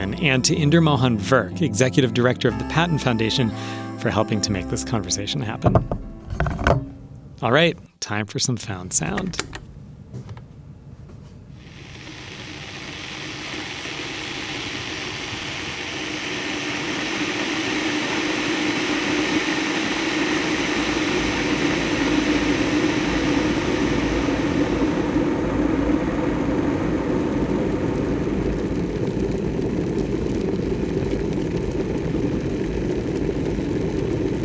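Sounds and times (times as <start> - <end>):
speech: 0.0 - 9.6
hot water kettle heating: 11.6 - 34.4.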